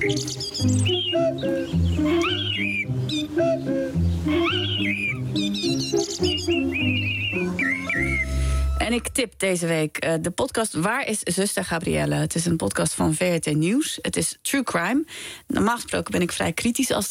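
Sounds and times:
speech: 0.0 - 3.1, 9.0 - 17.0
birds chirping and tweeting: 0.0 - 9.2.

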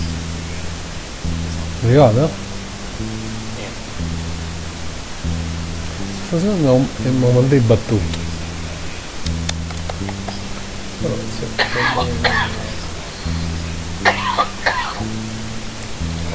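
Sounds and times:
steady low droning tone shifting pitch in steps: 0.0 - 16.3
speech: 1.8 - 3.2, 6.3 - 8.2, 11.0 - 12.6
harsh coughs with reverb: 11.6 - 12.8, 14.0 - 15.0.

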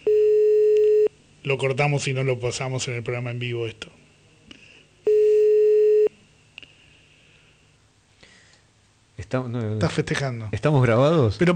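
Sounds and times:
telephone line tone during a live on-air call: 0.0 - 1.1, 5.1 - 6.1
speech: 1.4 - 4.0, 9.3 - 11.5.

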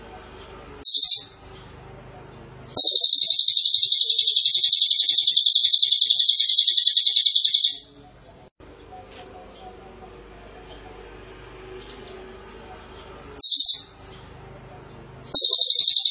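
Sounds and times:
small minivet song: 0.0 - 16.0.

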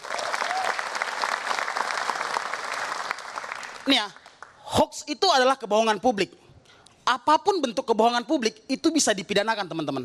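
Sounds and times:
audience applause: 0.0 - 4.5
speech: 3.9 - 6.4, 7.1 - 10.0.

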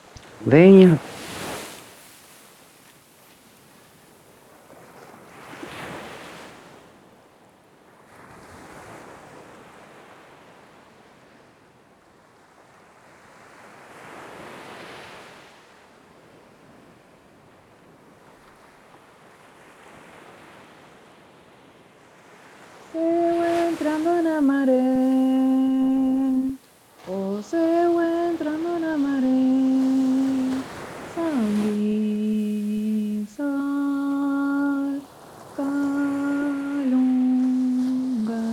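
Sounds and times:
gentle waves at Pântano do Sul beach: 0.0 - 11.4, 12.6 - 38.5
speech: 0.4 - 1.1.

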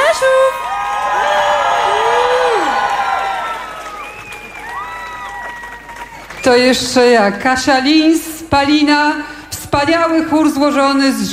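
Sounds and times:
audience applause and cheering: 0.0 - 7.2
speech: 6.5 - 11.3.

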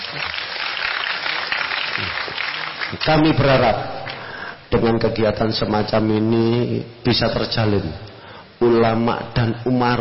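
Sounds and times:
applause at a large community event in Gedek district: 0.0 - 3.4
speech: 3.1 - 4.0, 4.7 - 9.9.

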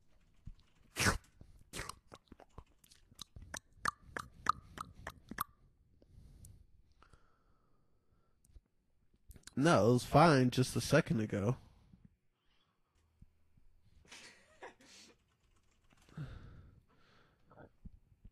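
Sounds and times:
wet lip smacking: 1.0 - 5.5
chewing mouth noises: 1.7 - 5.5
speech: 9.6 - 11.6.

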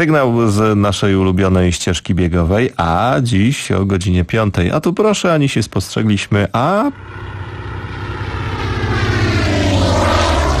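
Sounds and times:
speech: 0.0 - 7.3
airplane flying overhead: 6.7 - 10.5.

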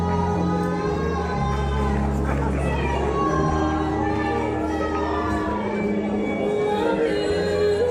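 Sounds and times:
crowd noise: 0.0 - 7.9
woman singing badly off-key: 0.0 - 7.9.

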